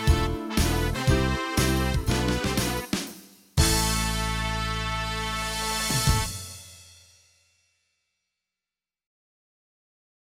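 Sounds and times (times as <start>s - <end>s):
CTK4400 fast soul rhythm: 0.0s - 6.7s.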